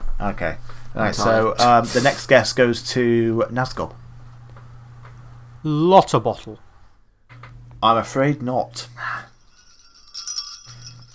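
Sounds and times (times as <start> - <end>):
speech: 0.2 - 4.0, 5.6 - 6.6, 7.8 - 9.2
jingle bells rung to buzz in: 9.0 - 11.1.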